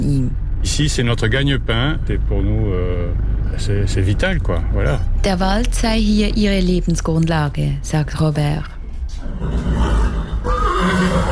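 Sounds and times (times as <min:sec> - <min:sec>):
speech: 0:00.1 - 0:09.6
horse whinnying in a stud farm stable: 0:09.3 - 0:11.3.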